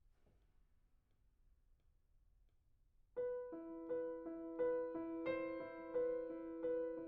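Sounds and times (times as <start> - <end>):
piano: 3.2 - 7.0.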